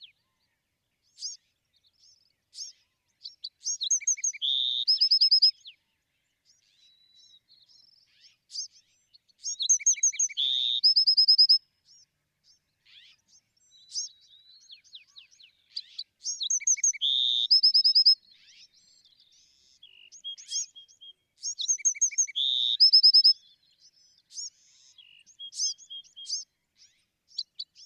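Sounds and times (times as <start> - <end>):
Bewick's wren singing: 1.1 - 5.6, 6.5 - 27.8.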